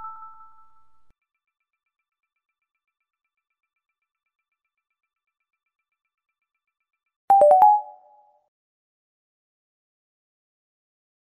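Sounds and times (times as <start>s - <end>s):
notification sound: 7.3s - 8.2s.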